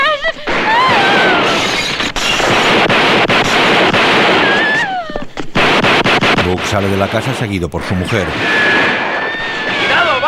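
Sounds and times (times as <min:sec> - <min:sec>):
shotgun blasts during a shootout with police at a house: 0:00.5 - 0:04.9, 0:05.5 - 0:10.2
speech: 0:06.8 - 0:08.8
whistling tones: 0:08.4 - 0:10.1.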